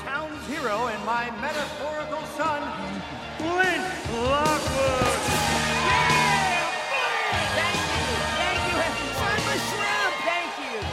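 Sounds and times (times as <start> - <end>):
speech: 0.5 - 5.0
crowd applause: 2.6 - 10.9.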